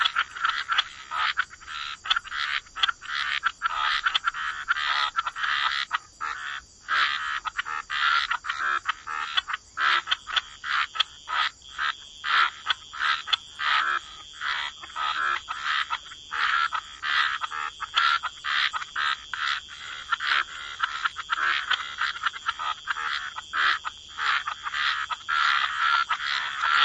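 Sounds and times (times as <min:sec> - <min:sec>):
frogs croaking in a chorus: 0:00.0 - 0:26.8.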